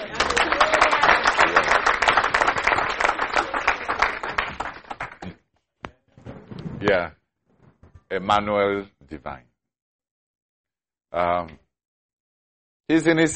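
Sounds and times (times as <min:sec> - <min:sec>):
audience clapping: 0:00.0 - 0:05.4
speech: 0:06.9 - 0:07.2, 0:08.1 - 0:09.5, 0:11.1 - 0:11.6, 0:12.9 - 0:13.3.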